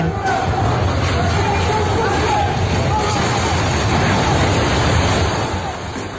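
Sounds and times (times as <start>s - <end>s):
crowd shouting and screaming: 0.0s - 4.7s
building collapsing: 0.0s - 6.1s.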